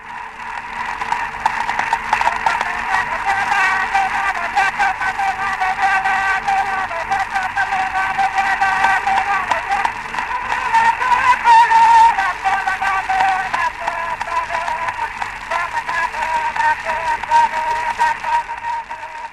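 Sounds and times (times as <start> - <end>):
crackly wax cylinder recording of singing: 0.0 - 19.3.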